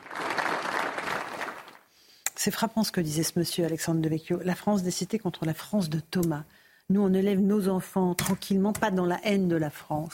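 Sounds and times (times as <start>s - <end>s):
applause at memorial ceremony: 0.0s - 1.9s
speech: 2.4s - 10.1s.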